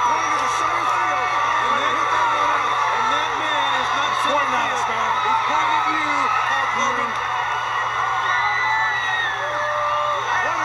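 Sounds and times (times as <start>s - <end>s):
large crowd cheering: 0.0s - 10.6s.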